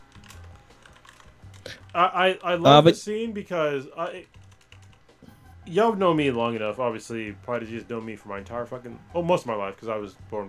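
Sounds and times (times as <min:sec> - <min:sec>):
computer keyboard typing: 0:00.1 - 0:02.0, 0:04.3 - 0:05.0
speech: 0:02.0 - 0:04.4, 0:05.7 - 0:10.4.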